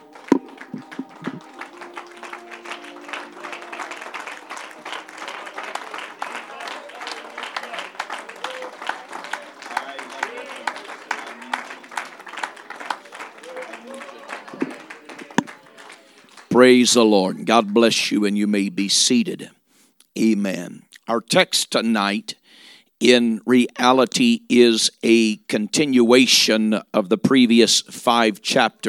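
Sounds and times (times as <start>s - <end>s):
audience clapping hands in praise: 0.0s - 18.0s
speech: 16.6s - 19.6s, 20.2s - 22.4s, 23.0s - 28.8s.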